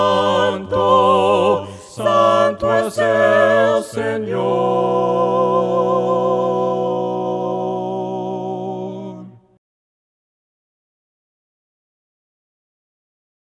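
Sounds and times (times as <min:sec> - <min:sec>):
voices singing hymns a cappella: 0:00.0 - 0:09.6.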